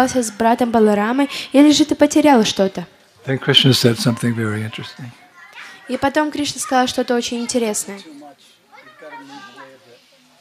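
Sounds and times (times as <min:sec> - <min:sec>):
speech: 0:00.0 - 0:05.2, 0:05.9 - 0:08.2
young children babbling and squealing in a room: 0:03.8 - 0:10.0.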